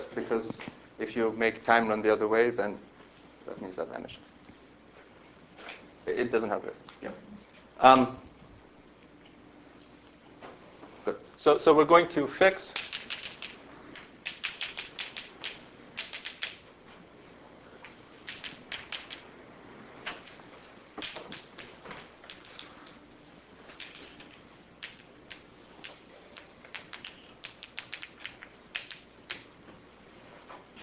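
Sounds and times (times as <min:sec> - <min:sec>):
speech: 0:00.2 - 0:04.4, 0:06.1 - 0:08.3, 0:11.1 - 0:12.9
equations being written during a physics lecture: 0:14.2 - 0:16.6, 0:18.2 - 0:19.2, 0:23.7 - 0:29.5.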